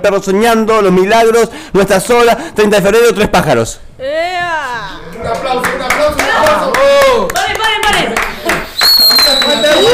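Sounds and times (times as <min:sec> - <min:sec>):
speech: 0:00.0 - 0:04.2
audience applause: 0:05.4 - 0:09.9.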